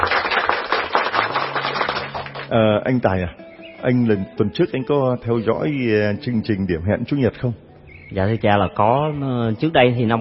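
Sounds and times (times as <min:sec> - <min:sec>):
small group clapping to welcome a guest: 0:00.0 - 0:02.6
speech: 0:02.5 - 0:10.2.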